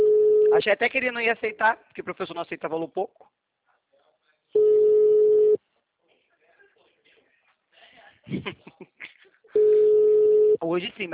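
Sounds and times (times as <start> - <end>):
ringback tone of an outgoing telephone call: 0.0 - 0.6, 4.6 - 5.6, 9.6 - 10.6
speech: 0.6 - 3.4, 8.3 - 11.1
laughter: 8.2 - 9.5.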